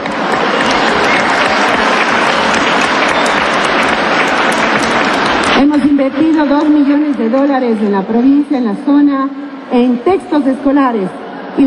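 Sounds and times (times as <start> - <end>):
audience applause: 0.0 - 7.1
speech: 5.6 - 11.6.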